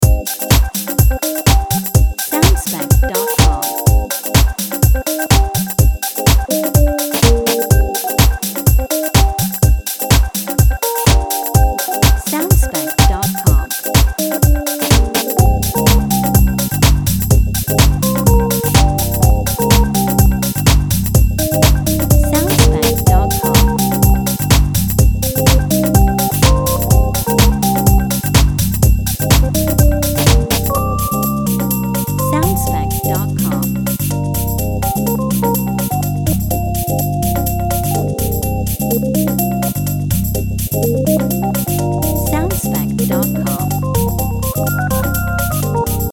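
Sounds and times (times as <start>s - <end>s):
jazzy house music: 0.0s - 46.1s.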